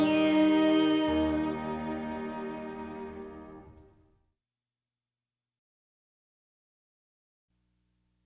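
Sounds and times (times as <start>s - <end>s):
song: 0.0s - 3.9s.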